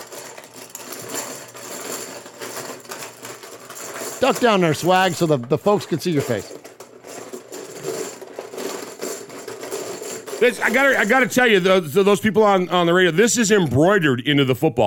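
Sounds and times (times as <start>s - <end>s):
container shaken to draw a winner: 0.0s - 11.8s
speech: 4.2s - 6.6s, 10.4s - 14.8s.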